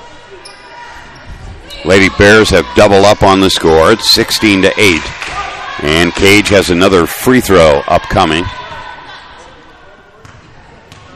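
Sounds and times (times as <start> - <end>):
murmur: 0.0 - 11.1
speech: 1.8 - 8.6
basketball dribbled right-handed at the free throw line: 10.2 - 11.1.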